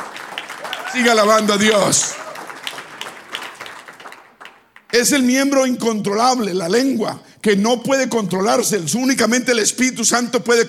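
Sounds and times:
audience applause: 0.0 - 4.8
speech: 0.9 - 2.2, 4.9 - 10.6.

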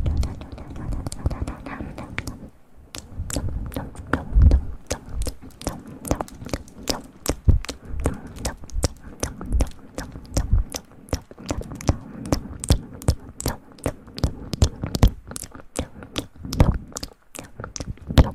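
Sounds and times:
low soft murmur: 0.0 - 18.3
wet mouth clicks, smacks and crackles: 0.0 - 18.3.

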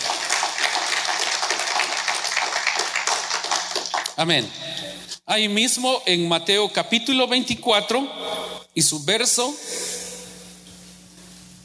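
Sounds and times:
audience applauding: 0.0 - 5.1
speech: 4.2 - 4.6, 5.3 - 8.2, 8.8 - 9.8.

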